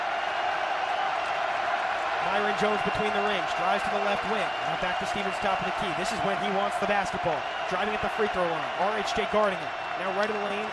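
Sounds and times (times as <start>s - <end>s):
basketball arena crowd rising and cheering: 0.0s - 10.7s
speech: 2.3s - 10.7s.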